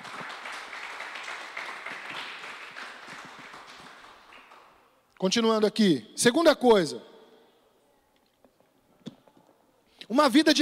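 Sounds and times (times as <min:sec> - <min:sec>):
audience applause: 0:00.0 - 0:04.8
speech: 0:05.2 - 0:07.1, 0:10.2 - 0:10.5.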